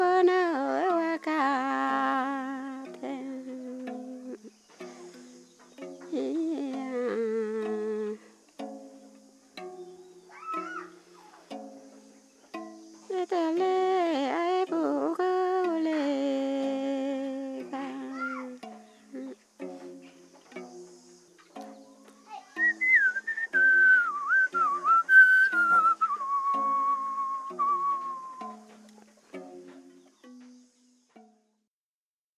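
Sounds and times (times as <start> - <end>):
Kayaw zither playing: 0.0 - 31.7.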